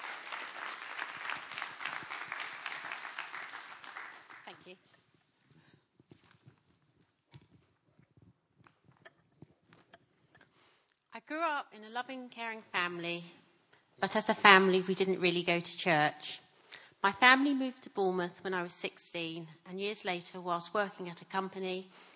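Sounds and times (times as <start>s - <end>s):
crowd applause: 0.0s - 4.6s
speech: 11.7s - 13.4s, 14.0s - 16.4s, 17.0s - 22.1s.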